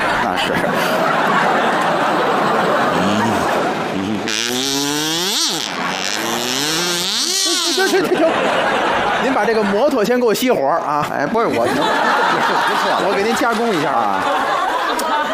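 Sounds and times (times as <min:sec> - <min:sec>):
laughter: 0:00.0 - 0:04.9, 0:05.5 - 0:15.3
speech: 0:00.3 - 0:00.9, 0:09.4 - 0:14.6
kazoo playing: 0:03.0 - 0:08.1.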